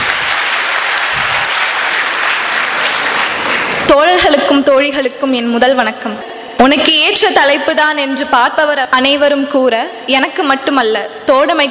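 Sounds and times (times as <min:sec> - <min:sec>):
audience applause welcoming a poet at a poetry gathering: 0:00.0 - 0:03.9
speech: 0:04.0 - 0:11.6.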